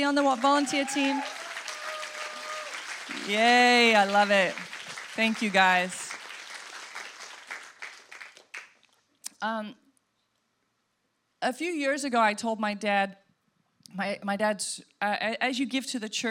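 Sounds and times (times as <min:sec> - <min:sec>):
speech: 0:00.0 - 0:01.4, 0:03.2 - 0:06.0, 0:09.4 - 0:09.8, 0:11.4 - 0:13.2, 0:13.9 - 0:16.3
audience applause: 0:00.0 - 0:08.8.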